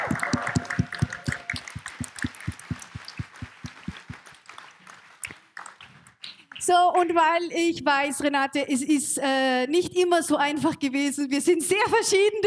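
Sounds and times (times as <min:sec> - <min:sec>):
audience applause: 0:00.0 - 0:06.2
speech: 0:06.7 - 0:12.4.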